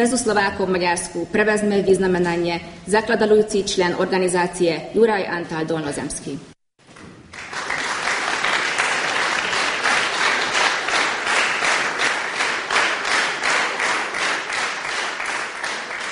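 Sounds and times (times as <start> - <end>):
speech: 0.0 - 6.5
large ceremony crowd applauding: 7.3 - 16.1.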